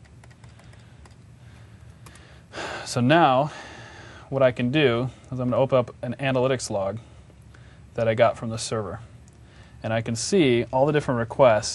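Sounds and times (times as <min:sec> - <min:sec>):
rapid mouse clicks on a check-in button: 0:00.0 - 0:01.3
speech: 0:02.9 - 0:03.6, 0:04.3 - 0:07.1, 0:08.0 - 0:09.1, 0:09.8 - 0:11.7.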